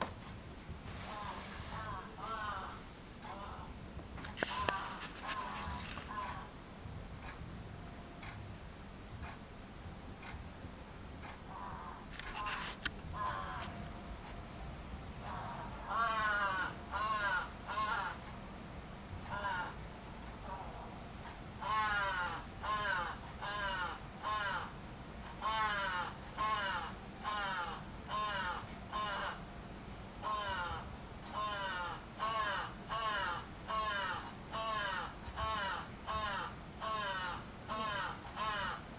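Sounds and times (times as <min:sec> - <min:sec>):
low background rumble: 0:00.0 - 0:38.9
crow cawing: 0:01.8 - 0:02.8, 0:11.5 - 0:12.6, 0:13.2 - 0:13.8, 0:15.2 - 0:18.2, 0:19.3 - 0:19.8, 0:21.6 - 0:24.8, 0:25.4 - 0:29.4, 0:30.2 - 0:38.8.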